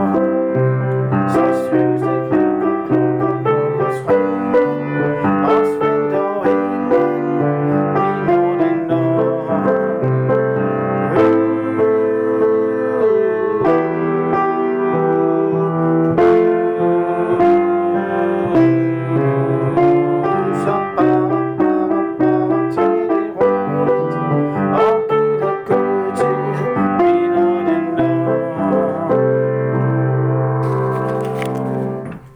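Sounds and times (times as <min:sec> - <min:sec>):
soprano singing: 0:00.0 - 0:32.3.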